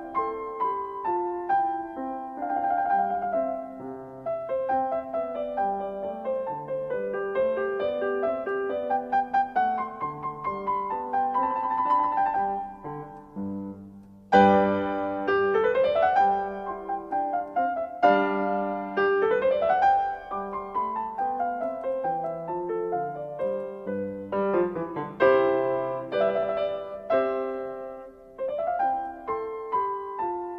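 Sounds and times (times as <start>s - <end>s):
classical piano sonata divertimento in C major: 0.0s - 30.5s.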